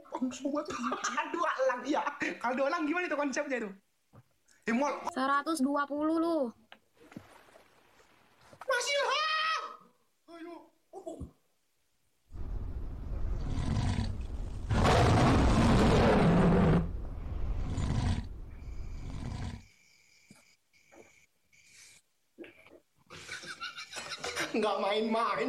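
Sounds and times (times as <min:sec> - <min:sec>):
speech: 0:00.2 - 0:03.8, 0:04.7 - 0:06.6, 0:24.6 - 0:25.4
lion roaring: 0:12.4 - 0:19.6.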